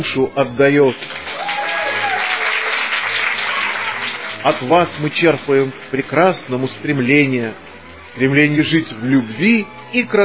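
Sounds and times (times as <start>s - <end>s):
speech: 0.0s - 1.3s, 4.4s - 10.2s
audience applause honouring cultural workers at a celebration: 0.9s - 7.2s.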